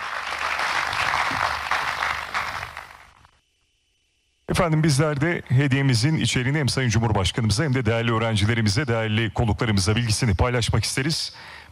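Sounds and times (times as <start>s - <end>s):
crowd applause: 0.0s - 3.2s
speech: 4.6s - 11.6s.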